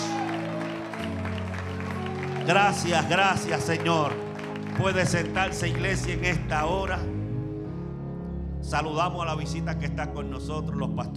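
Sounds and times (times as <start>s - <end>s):
audience applauding loudly: 0.0s - 6.8s
sustained keyboard chords: 0.7s - 11.1s
speech: 2.4s - 4.2s, 4.8s - 7.1s, 8.7s - 11.1s.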